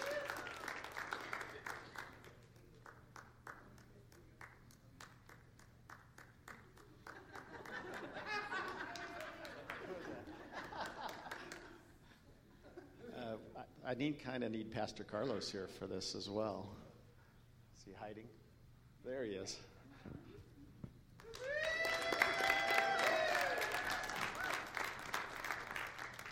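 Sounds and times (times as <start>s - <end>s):
audience applause: 0.0s - 11.8s, 21.2s - 26.2s
laughter: 7.0s - 13.5s
speech: 13.9s - 16.8s, 18.0s - 18.4s, 19.1s - 19.7s.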